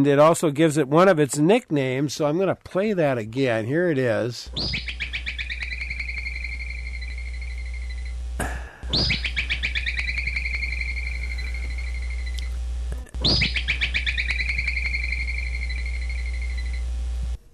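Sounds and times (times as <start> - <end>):
speech: 0.0 - 5.0
groundhog warning whistle: 4.5 - 8.2, 8.8 - 12.6, 13.2 - 16.9.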